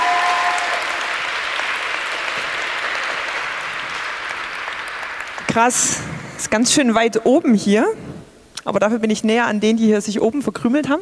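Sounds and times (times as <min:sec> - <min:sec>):
large audience applause: 0:00.0 - 0:06.6
speech: 0:05.5 - 0:11.0.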